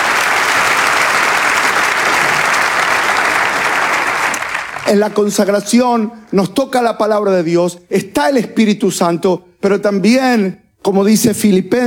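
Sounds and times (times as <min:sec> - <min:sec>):
audience applause: 0:00.0 - 0:05.6
speech: 0:04.9 - 0:11.8.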